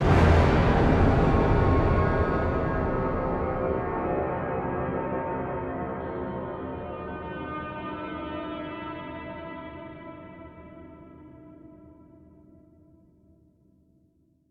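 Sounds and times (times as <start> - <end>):
scary music stinger: 0.0 - 6.8.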